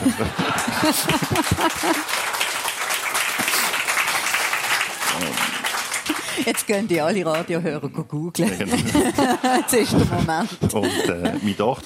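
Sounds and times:
laughter: 0:00.0 - 0:02.3, 0:08.4 - 0:11.8
audience applause: 0:00.0 - 0:07.4
speech: 0:00.1 - 0:02.4, 0:06.4 - 0:11.8.

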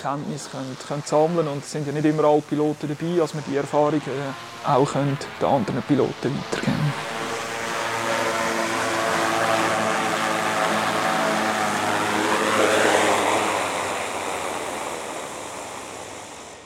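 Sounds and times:
speech: 0:00.0 - 0:07.1
firefighting drone propellers whirring: 0:00.0 - 0:16.6.

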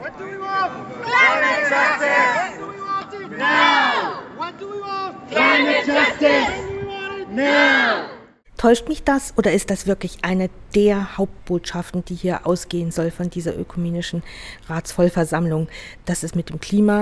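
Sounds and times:
hundreds of young Christians chanting at a demonstration: 0:00.0 - 0:08.4
speech: 0:08.6 - 0:16.9.

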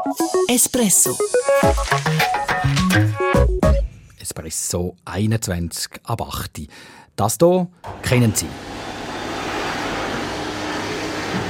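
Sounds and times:
speech: 0:00.0 - 0:03.5, 0:04.3 - 0:09.0
vacuum cleaner running: 0:07.9 - 0:11.4.

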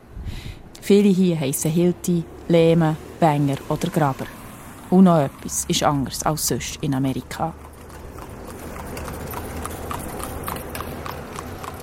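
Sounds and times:
speech: 0:00.9 - 0:07.6
horse hooves of a horse-drawn carriage trotting: 0:07.1 - 0:11.8.

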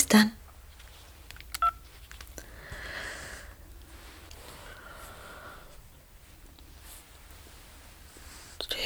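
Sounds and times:
speech: 0:00.1 - 0:00.4
phone keypad dialing tones: 0:01.6 - 0:01.9.

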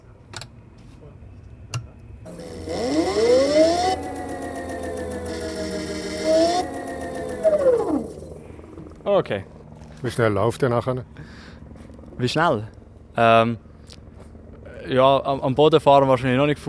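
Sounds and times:
solar car high-voltage contactors switching on: 0:02.3 - 0:08.8
speech: 0:09.1 - 0:11.4, 0:12.2 - 0:13.7, 0:14.9 - 0:16.6.

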